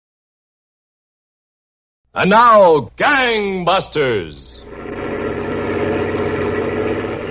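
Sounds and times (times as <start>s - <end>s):
speech: 2.1s - 4.9s
truck engine running: 4.6s - 7.2s.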